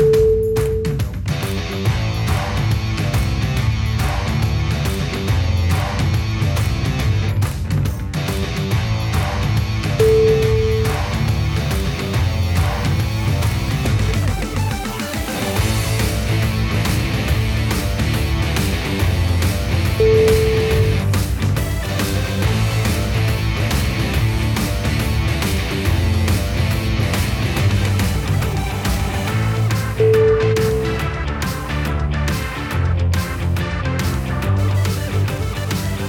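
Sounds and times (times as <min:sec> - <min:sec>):
hard rock action music: 0:00.2 - 0:36.0.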